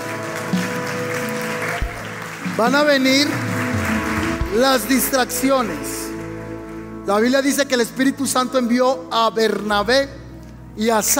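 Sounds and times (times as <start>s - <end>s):
audience applause: 0.0s - 6.8s
speech: 2.6s - 3.4s, 4.5s - 6.0s, 7.1s - 10.2s, 10.8s - 11.1s.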